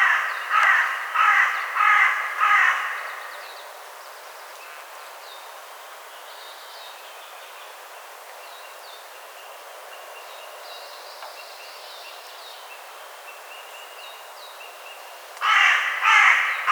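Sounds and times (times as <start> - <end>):
Carrion crow Corvus corone cawing: 0.0 - 3.4, 15.4 - 16.7.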